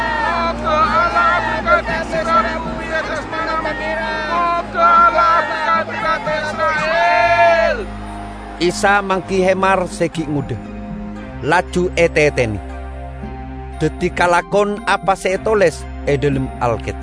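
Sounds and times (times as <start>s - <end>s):
crowd cheering and shouting: 0.0s - 10.4s
speech: 8.6s - 10.7s, 11.4s - 12.7s, 13.8s - 17.0s.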